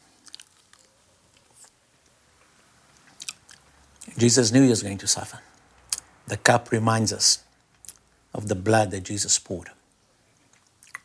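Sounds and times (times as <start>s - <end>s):
chewing communion bread: 0.0s - 4.1s, 10.4s - 11.0s
speech: 4.2s - 5.6s, 6.3s - 7.5s, 8.4s - 9.8s.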